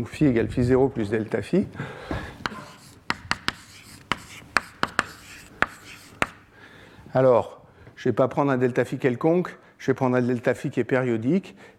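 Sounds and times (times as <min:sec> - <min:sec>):
speech: 0:00.0 - 0:02.3, 0:07.1 - 0:11.7
chalk tapping and scratching while writing an equation in a physics lecture: 0:02.4 - 0:06.5.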